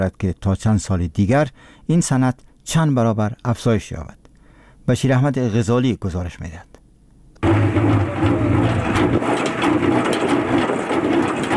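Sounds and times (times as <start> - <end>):
speech: 0.0 - 4.2, 4.8 - 6.7
honey extractor machine running: 7.4 - 11.5
honey extractor rattling clatter: 7.4 - 11.5.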